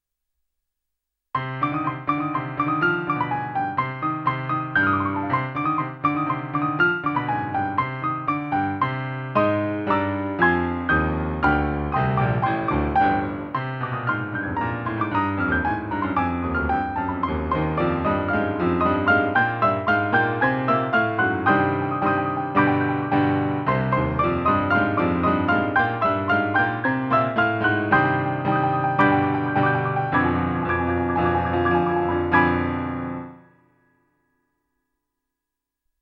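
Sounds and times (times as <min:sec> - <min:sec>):
piano piece: 0:01.4 - 0:34.0.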